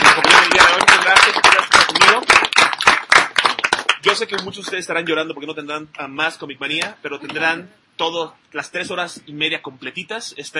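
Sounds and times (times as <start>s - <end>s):
applause: 0.0s - 4.9s
speech: 4.1s - 10.5s.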